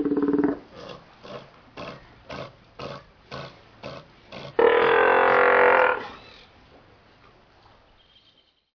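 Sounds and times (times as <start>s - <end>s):
northern fur seal: 4.5s - 6.5s.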